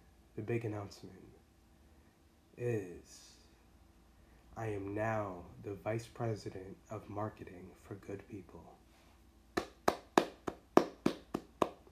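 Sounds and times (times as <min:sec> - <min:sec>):
speech: 0:00.4 - 0:01.4, 0:02.6 - 0:03.4, 0:04.6 - 0:08.8
hand clapping: 0:09.6 - 0:11.9.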